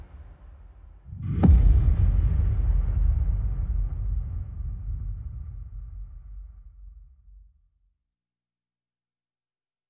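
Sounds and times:
percussion: 0:00.0 - 0:07.3.

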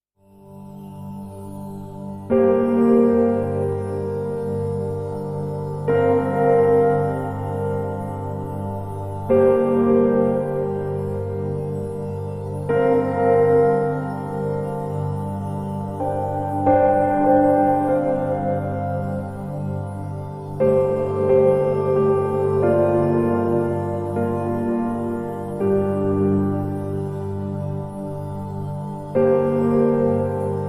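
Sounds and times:
piano: 0:00.2 - 0:30.6
drone: 0:00.5 - 0:30.6.

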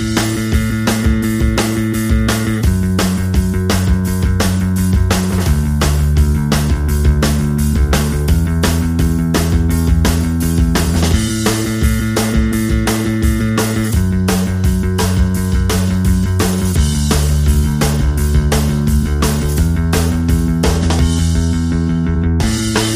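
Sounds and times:
bass: 0:00.0 - 0:22.9
drums: 0:00.0 - 0:22.9.

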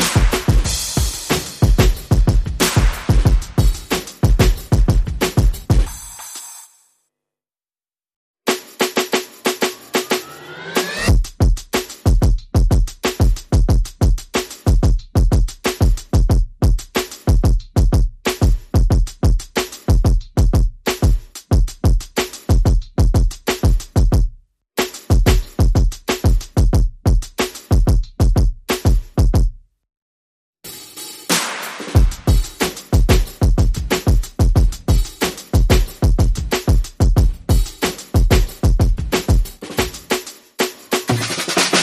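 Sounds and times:
percussion: 0:00.0 - 0:06.8, 0:08.5 - 0:29.5, 0:30.7 - 0:41.8
sound effects: 0:09.8 - 0:11.1.

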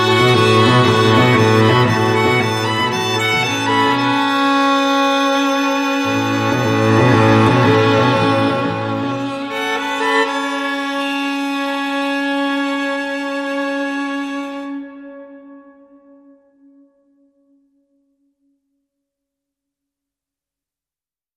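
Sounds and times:
strings: 0:00.0 - 0:14.9.

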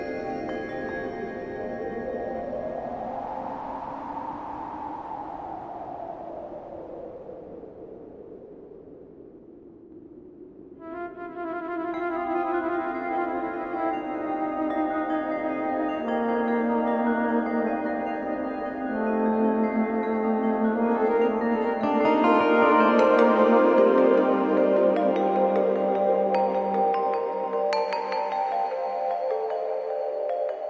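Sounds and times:
effects synth pads: 0:00.0 - 0:03.7, 0:10.8 - 0:30.6.

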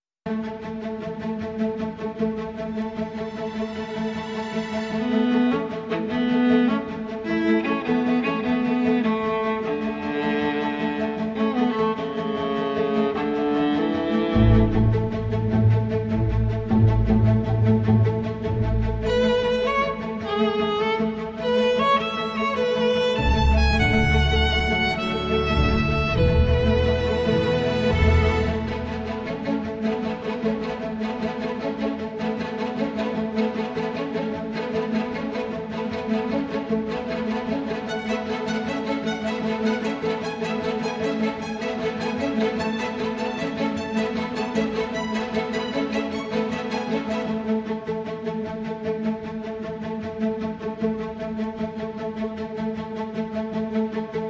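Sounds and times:
strings: 0:00.3 - 0:54.2.

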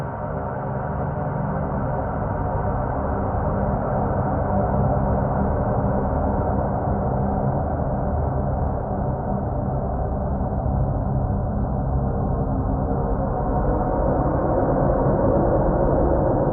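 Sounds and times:
drone in C: 0:00.1 - 0:16.5.

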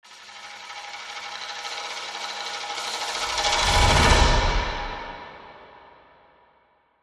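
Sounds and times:
tambourine played with stick: 0:00.1 - 0:04.9.

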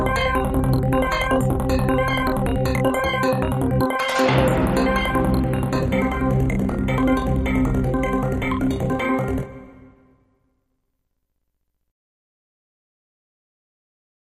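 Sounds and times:
high energy tabloid news music: 0:00.0 - 0:10.1.

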